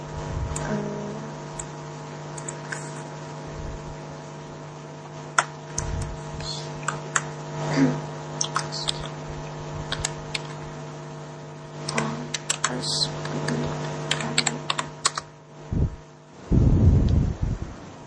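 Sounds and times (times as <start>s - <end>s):
steady low hum: 0.0s - 4.6s, 5.4s - 18.0s
keys typed on a computer keyboard: 11.9s - 12.8s, 14.1s - 15.3s.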